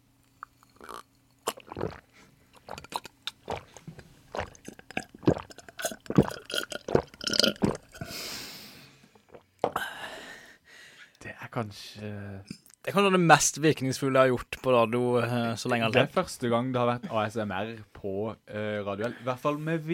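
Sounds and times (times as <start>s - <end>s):
person gulping and swallowing water: 0.5s - 8.1s
breathy exhales: 9.7s - 11.1s
speech: 11.6s - 19.9s.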